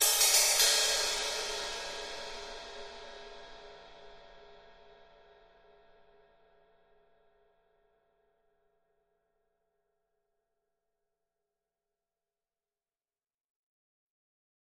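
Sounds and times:
drum kit cymbal accent: 0.0s - 4.1s.

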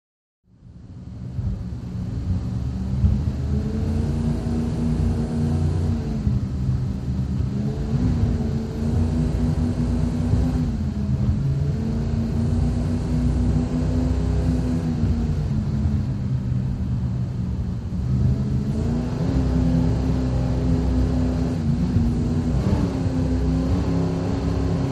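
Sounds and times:
offshore powerboat racing: 1.4s - 24.9s.

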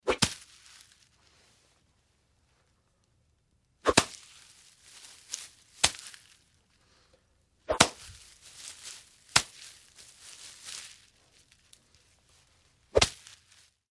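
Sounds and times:
machete hacking in jungle: 0.1s - 0.5s, 3.8s - 4.3s, 5.8s - 6.2s, 7.7s - 8.2s, 9.3s - 9.7s, 13.0s - 13.4s.

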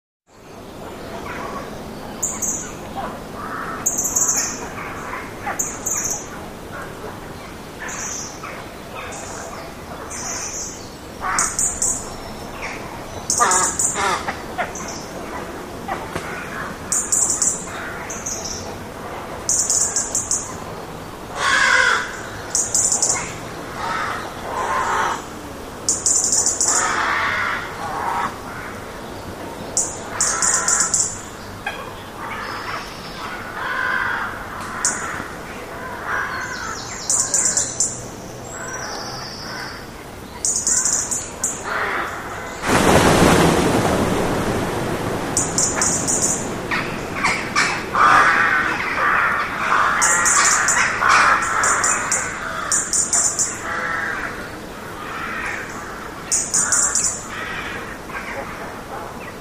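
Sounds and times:
rooks in trees: 0.6s - 59.4s.

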